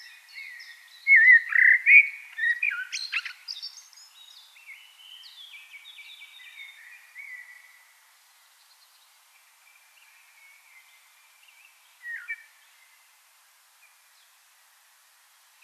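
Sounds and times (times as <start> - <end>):
common blackbird singing: 0.0 - 7.8, 10.0 - 12.9.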